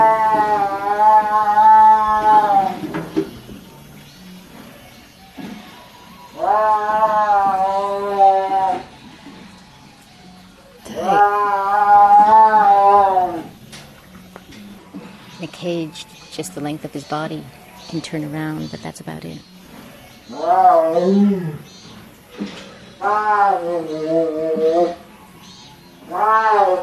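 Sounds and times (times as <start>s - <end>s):
tiger yowling: 0.0s - 2.8s, 5.7s - 9.0s, 10.2s - 13.6s, 20.3s - 21.7s, 22.9s - 25.4s, 26.0s - 26.8s
speech: 15.9s - 19.6s, 20.3s - 21.7s, 23.0s - 25.0s, 26.2s - 26.8s.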